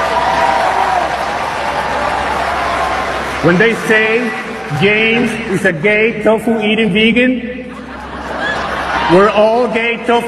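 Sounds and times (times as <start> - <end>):
large crowd cheering and clapping: 0.0 - 6.0, 7.9 - 9.6
speech: 3.4 - 7.6, 9.1 - 10.2
laughter: 7.4 - 10.2.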